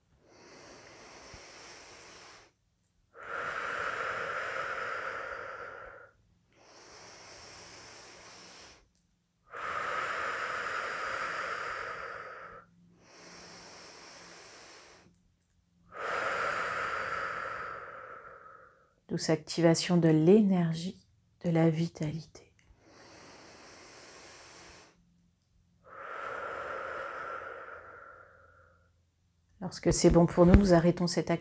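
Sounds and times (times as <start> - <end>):
slow deep breathing in an energy-activation breathing exercise: 0.2 - 19.0, 22.7 - 29.0
speech: 19.1 - 22.5, 29.7 - 31.3.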